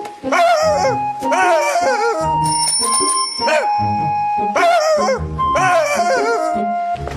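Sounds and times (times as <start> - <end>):
dogs barking: 0.3 - 2.4, 4.5 - 6.7
thin steady ringing tone: 2.4 - 3.9.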